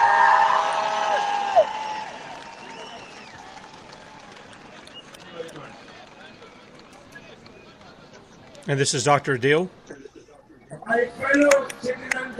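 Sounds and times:
rally crowd cheering and clapping: 0.0 - 8.0
speech: 8.7 - 10.0, 10.9 - 12.3.

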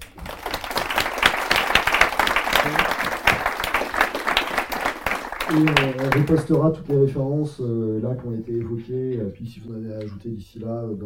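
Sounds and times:
crowd applauding: 0.0 - 7.1
speech: 5.5 - 11.0.

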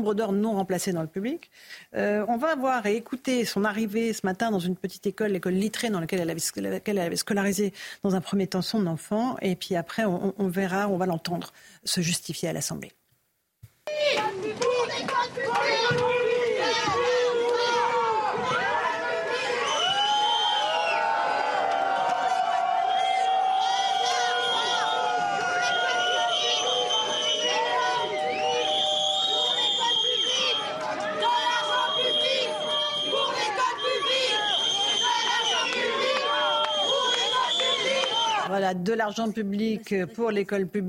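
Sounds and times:
speech: 0.0 - 13.0, 38.7 - 40.8
crowd booing a politician outside a school: 13.9 - 38.5.

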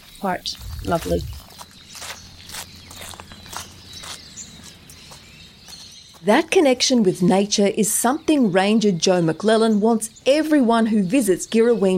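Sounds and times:
footsteps crunching on gravel: 0.0 - 6.3
speech: 0.2 - 1.4, 6.2 - 11.9.

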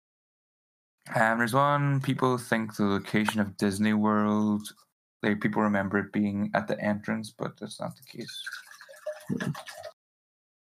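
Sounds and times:
speech: 1.1 - 8.7, 9.3 - 9.9
water dripping and splashing: 7.9 - 10.0.

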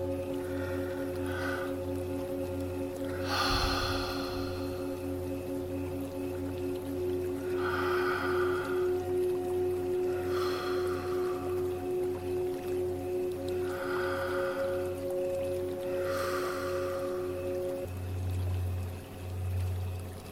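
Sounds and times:
steady low sustained musical drone: 0.0 - 20.3
slow deep breaths during a mindfulness meditation: 0.3 - 2.2, 3.1 - 5.4, 7.5 - 9.2, 10.0 - 12.0, 13.5 - 17.8.

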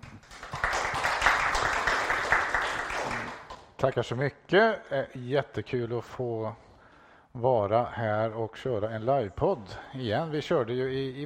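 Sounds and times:
audience applause: 0.0 - 3.6
speech: 3.8 - 6.7, 7.4 - 11.2.

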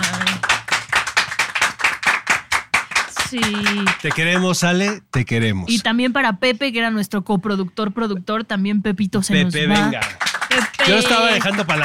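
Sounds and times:
applause: 0.0 - 5.5, 9.6 - 11.8
speech: 3.3 - 11.8.

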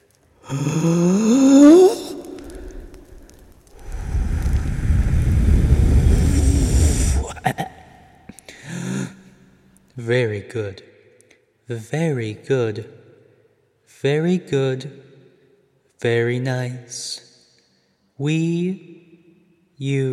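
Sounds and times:
speech: 0.4 - 1.3, 10.1 - 10.9, 11.7 - 13.0, 14.0 - 15.1, 16.0 - 17.3, 18.2 - 18.9, 19.8 - 20.1
one big deep breath: 0.4 - 7.4, 8.4 - 9.4.

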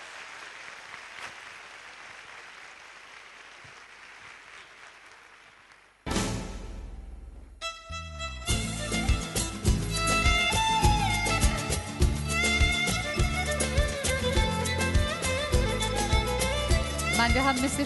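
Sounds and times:
audience applause at a seminar: 0.0 - 6.1
music: 6.1 - 17.8
speech: 17.4 - 17.8.

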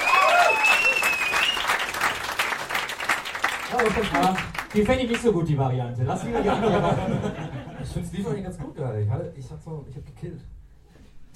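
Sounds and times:
whistle-like tones: 0.0 - 2.0
audience applause: 0.0 - 5.2
speech: 3.8 - 10.6
laughter: 6.1 - 8.0.

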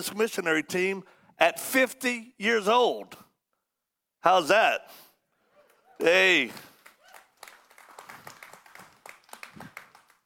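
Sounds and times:
speech: 0.0 - 3.2, 4.2 - 5.0, 6.0 - 6.7
people clapping: 5.6 - 10.2.

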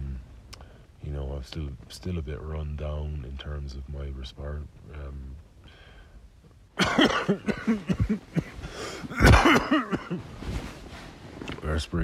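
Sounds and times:
speech: 1.4 - 5.4, 7.0 - 10.7, 11.7 - 12.0
harsh chesty coughs from someone run down after returning to altitude: 6.8 - 10.3.

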